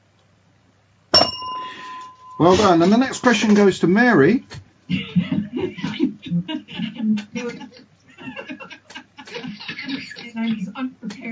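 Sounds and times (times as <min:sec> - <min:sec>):
phone ringing: 0:01.2 - 0:04.4
speech: 0:02.4 - 0:05.3
laughter: 0:04.9 - 0:10.8.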